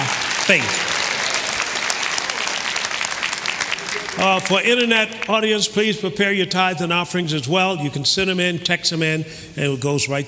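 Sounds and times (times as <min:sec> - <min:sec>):
audience applauding: 0:00.0 - 0:05.4
speech: 0:00.5 - 0:00.9, 0:04.2 - 0:10.2.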